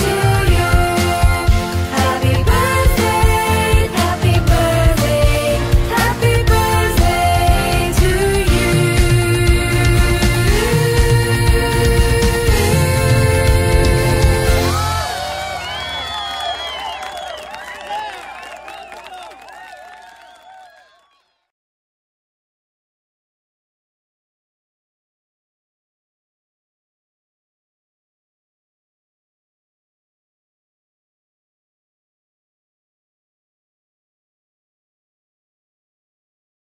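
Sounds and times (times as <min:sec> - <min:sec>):
birthday song party version: 0:00.0 - 0:17.0.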